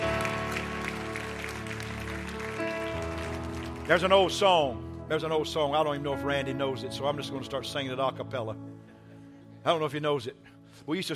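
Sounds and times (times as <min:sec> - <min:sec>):
audience clapping hands: 0:00.0 - 0:04.5
speech: 0:03.9 - 0:08.7, 0:09.6 - 0:11.1.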